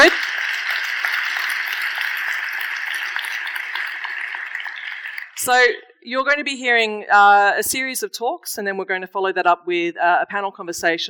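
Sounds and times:
audience applause: 0.0s - 5.4s
speech: 5.5s - 11.0s.

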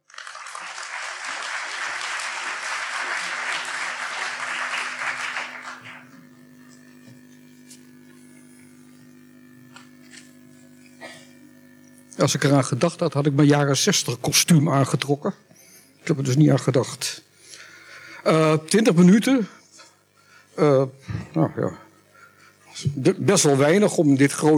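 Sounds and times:
audience applause: 0.0s - 6.1s
speech: 12.2s - 17.3s, 18.2s - 19.6s, 20.6s - 21.8s, 23.0s - 24.5s.

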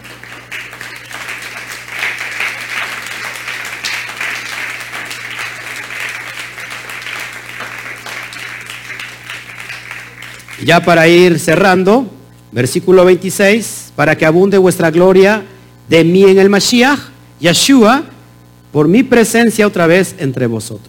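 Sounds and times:
audience applause: 0.0s - 11.0s
speech: 10.6s - 18.1s, 18.7s - 20.8s.

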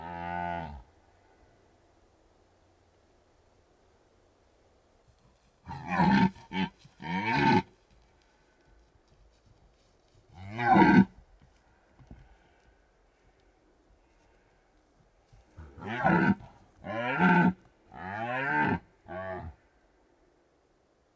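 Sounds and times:
red deer stags roaring during the rut in Bucovina Romania: 5.6s - 7.7s, 10.3s - 11.2s, 15.5s - 19.7s.

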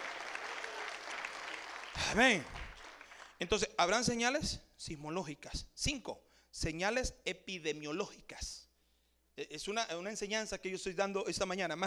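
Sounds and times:
audience applause: 0.0s - 3.4s
speech: 2.0s - 2.6s, 3.4s - 8.6s, 9.4s - 11.8s.

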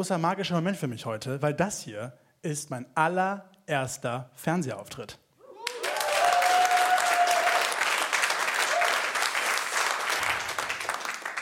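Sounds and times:
speech: 0.0s - 5.2s
whistle or cheer: 5.5s - 7.7s
audience applause: 5.6s - 11.3s.

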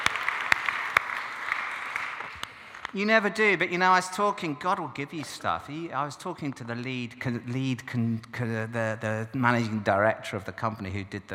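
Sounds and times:
audience applause: 0.0s - 3.0s
speech: 2.9s - 11.3s.

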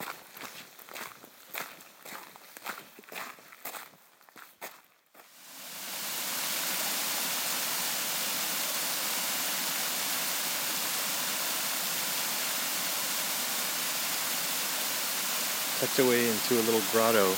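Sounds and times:
waterfall in a forest grotto: 5.3s - 17.3s
speech: 15.8s - 17.3s.

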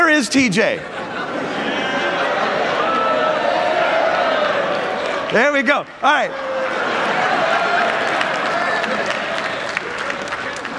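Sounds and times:
speech: 0.2s - 1.1s, 5.3s - 6.5s
laughter: 0.5s - 5.0s, 6.4s - 10.7s
audience clapping: 4.7s - 10.7s.

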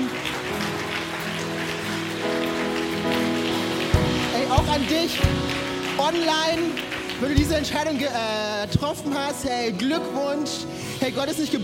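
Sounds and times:
audience applause: 0.0s - 8.6s
speech: 4.6s - 11.6s.

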